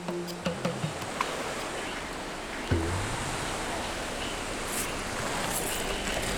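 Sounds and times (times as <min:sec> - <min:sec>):
waves on the shell-covered Lake Michigan shore at Harrington Beach State Park: 0:00.0 - 0:06.3.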